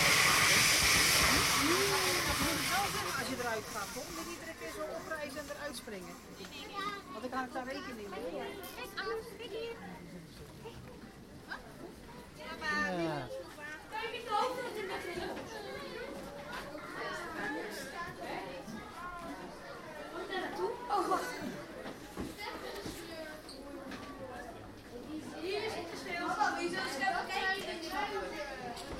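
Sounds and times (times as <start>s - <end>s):
loud burst of hissing noise: 0.0s - 6.3s
murmur of visitors' voices at the zoo: 0.0s - 28.9s.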